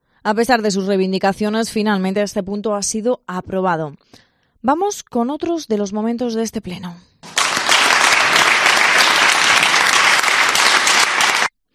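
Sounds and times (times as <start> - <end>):
speech: 0.2 - 7.1
crowd applauding in council chamber: 7.2 - 11.5.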